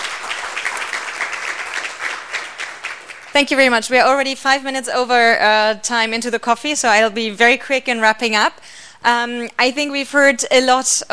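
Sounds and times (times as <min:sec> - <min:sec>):
applause: 0:00.0 - 0:03.8
speech: 0:03.4 - 0:11.1.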